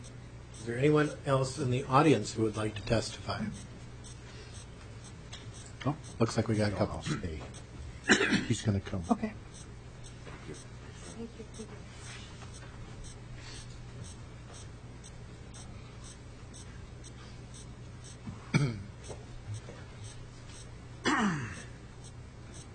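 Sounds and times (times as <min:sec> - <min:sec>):
speech: 0:00.7 - 0:03.7, 0:05.8 - 0:09.4
testifier clearing his throat at a committee hearing: 0:08.1 - 0:08.6, 0:18.4 - 0:19.0, 0:21.0 - 0:21.8.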